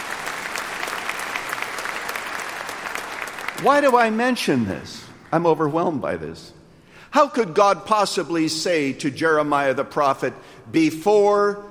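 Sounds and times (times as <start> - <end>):
room full of people clapping: 0.0 - 5.8
speech: 3.6 - 11.7.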